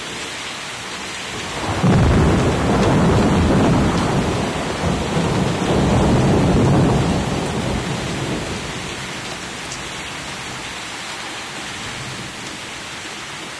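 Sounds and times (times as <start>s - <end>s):
rain: 0.0s - 13.5s
thunder: 1.5s - 9.5s.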